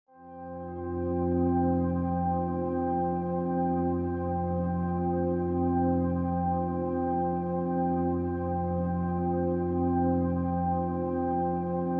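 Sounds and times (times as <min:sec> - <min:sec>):
ambient music: 0:00.2 - 0:11.9.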